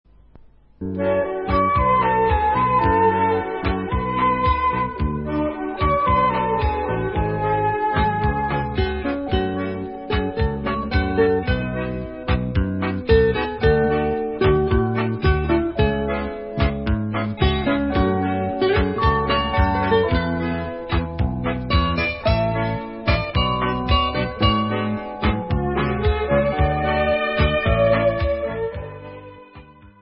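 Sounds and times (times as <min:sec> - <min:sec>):
instrumental music: 0:00.1 - 0:29.9.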